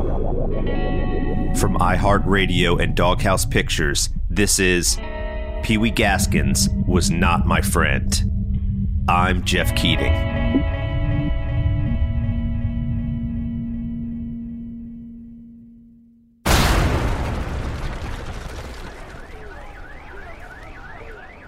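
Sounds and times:
tonal drone: 0:00.0 - 0:16.2
speech: 0:01.6 - 0:08.3, 0:09.1 - 0:10.7
wavering alarm wailing: 0:05.7 - 0:14.8, 0:19.1 - 0:21.4
bomb explosion rattling a South Carolina death-row prison complex: 0:16.4 - 0:19.4.

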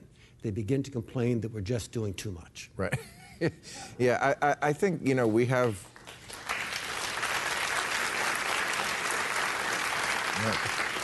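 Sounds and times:
speech: 0:00.4 - 0:05.9, 0:10.4 - 0:10.7
audience applause: 0:06.0 - 0:11.0.

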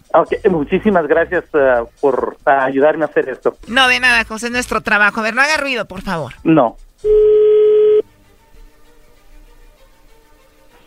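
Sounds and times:
speech: 0:00.2 - 0:07.3
telephone dial tone: 0:07.1 - 0:08.0.

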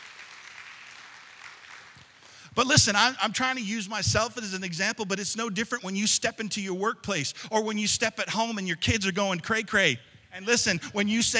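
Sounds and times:
crowd applauding: 0:00.0 - 0:02.5
speech: 0:02.6 - 0:11.3.

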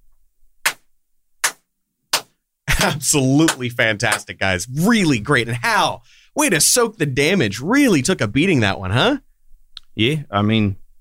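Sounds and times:
hands clapping: 0:00.7 - 0:04.3
speech: 0:02.8 - 0:09.3, 0:10.0 - 0:10.8.

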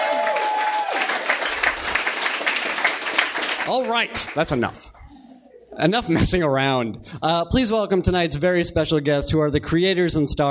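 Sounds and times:
audience applause: 0:00.0 - 0:05.0
speech: 0:03.7 - 0:04.9, 0:05.8 - 0:10.4.

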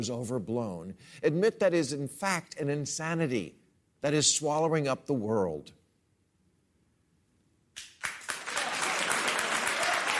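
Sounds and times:
speech: 0:00.0 - 0:05.8
studio audience applauding: 0:07.8 - 0:10.1
studio audience cheering: 0:08.2 - 0:10.1.

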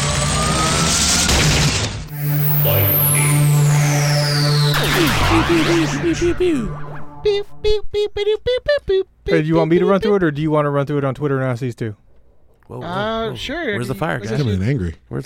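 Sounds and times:
synthesized lightning sound effect electric buzz: 0:01.0 - 0:07.7
warbling zaps: 0:01.4 - 0:07.7
descending whistling sweep: 0:02.1 - 0:08.2
speech: 0:05.5 - 0:12.0, 0:12.7 - 0:15.2.

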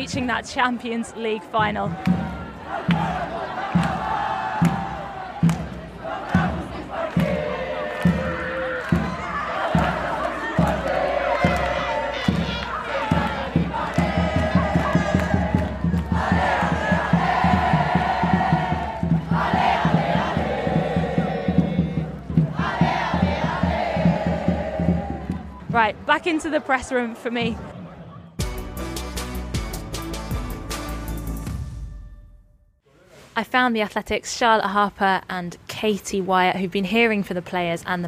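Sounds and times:
speech: 0:00.0 - 0:03.1, 0:25.8 - 0:27.7, 0:33.4 - 0:38.0
football fans chanting in unison: 0:00.0 - 0:28.4
drums pounding a steady beat: 0:01.6 - 0:32.2.

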